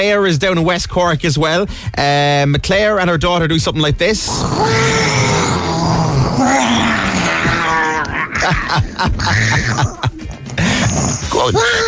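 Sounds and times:
speech: 0.0 - 5.1, 8.5 - 10.0, 11.0 - 11.8
person imitating a lion's roar: 4.3 - 10.1
laughter: 7.4 - 10.9.

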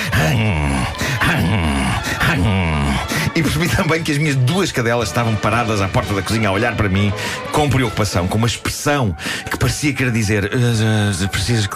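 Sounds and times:
person imitating laboured wheezing breathing: 0.0 - 3.4
speech: 0.3 - 11.7.

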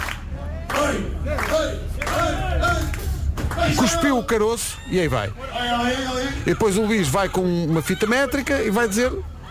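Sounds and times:
audience clapping: 0.0 - 4.0
speech: 3.7 - 9.3.

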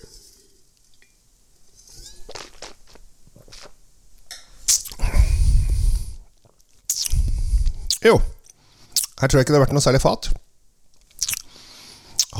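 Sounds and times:
airy slurps tasting Chablis white wine: 4.7 - 5.0, 6.9 - 8.1, 11.2 - 11.6, 12.2 - 12.3
small quiet mouth sounds: 4.7 - 6.1, 6.9 - 9.3, 11.2 - 11.5, 12.2 - 12.3
speech: 8.0 - 8.3, 9.2 - 10.4.

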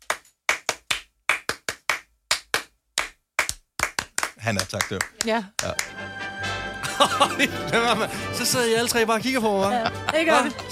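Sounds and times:
rhythmic hand clapping exercise: 0.0 - 6.2
speech: 4.4 - 10.7
laughter: 6.8 - 8.7, 9.4 - 10.7.

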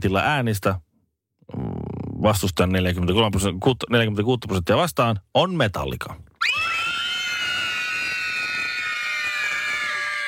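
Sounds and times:
speech: 0.0 - 0.9, 1.5 - 6.3
shriek of excitement: 6.4 - 10.2.

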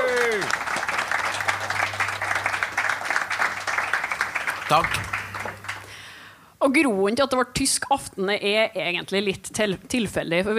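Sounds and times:
audience applause: 0.0 - 6.1
speech: 4.7 - 5.1, 6.6 - 10.5.

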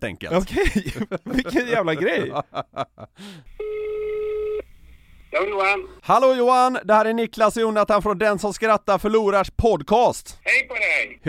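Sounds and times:
speech: 0.0 - 4.1, 5.3 - 11.2
laughter: 0.4 - 3.2
telephone ringing on outgoing call: 3.5 - 4.7.

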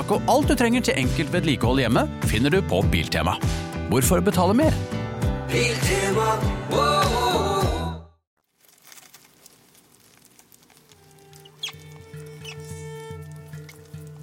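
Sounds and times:
speech: 0.1 - 7.4
rats scurrying and squeaking in a temple: 8.6 - 14.2
clicks and chirps: 10.9 - 14.0.

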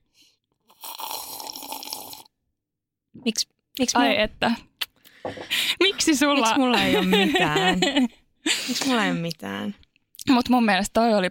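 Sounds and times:
slurping coffee from a cup: 0.5 - 2.3
speech: 3.2 - 11.2
laughter: 5.3 - 8.9.

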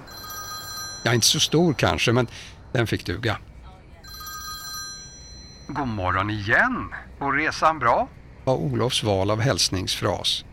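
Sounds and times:
telephone ringing during a call: 0.0 - 2.4, 4.0 - 6.2
low rumbling noise: 0.0 - 10.5
speech: 1.0 - 3.5, 5.7 - 10.5.

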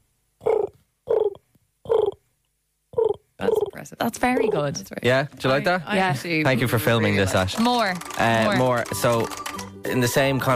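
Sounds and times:
person imitating pigeon cooing: 0.4 - 2.2, 3.0 - 3.8
speech: 3.4 - 10.5.

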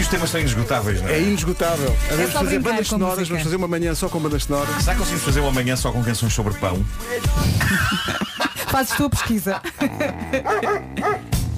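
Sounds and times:
speech: 0.1 - 11.3
laughter: 7.5 - 11.2
dog barking and yelping: 10.4 - 11.3.

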